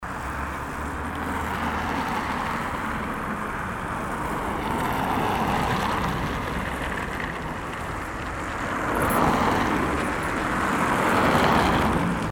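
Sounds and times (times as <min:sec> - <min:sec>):
road noise: 0:00.0 - 0:12.3.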